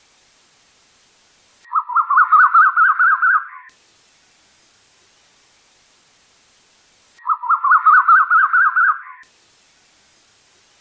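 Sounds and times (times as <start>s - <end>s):
bird chattering song: 1.7s - 3.7s, 7.2s - 9.2s.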